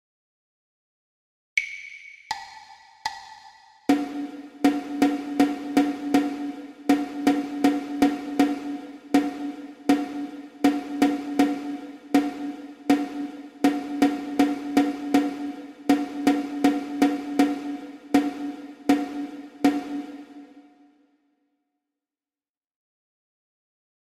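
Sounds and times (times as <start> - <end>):
rhythmic dictation exercise for ear training: 1.6 - 20.8.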